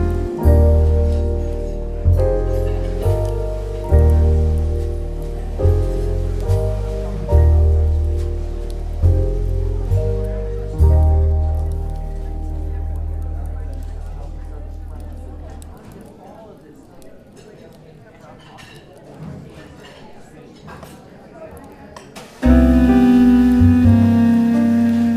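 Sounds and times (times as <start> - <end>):
soft smooth jazz with a thudding bass line: 0.0 - 15.8, 22.4 - 25.1
crackling fireplace: 0.0 - 16.1, 22.2 - 25.1.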